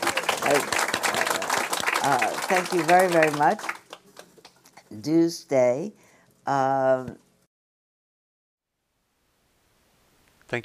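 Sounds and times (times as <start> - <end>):
audience applause: 0.0 - 4.5
speech: 0.5 - 0.8, 2.0 - 3.8, 4.9 - 7.2, 10.5 - 10.6.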